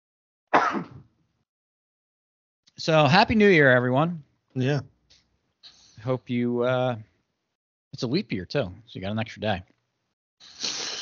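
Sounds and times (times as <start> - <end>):
person sneezing: 0.5 - 1.0, 10.4 - 11.0
speech: 2.8 - 4.9, 6.0 - 7.1, 8.0 - 9.7.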